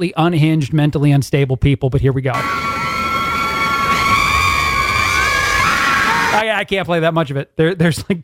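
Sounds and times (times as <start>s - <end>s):
speech: 0.0s - 2.7s, 6.3s - 8.2s
women screaming beside a lake: 2.4s - 6.4s.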